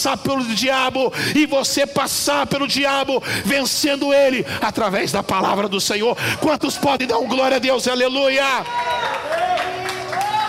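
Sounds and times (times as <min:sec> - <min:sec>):
speech: 0:00.0 - 0:10.3
audience applauding: 0:08.3 - 0:10.4.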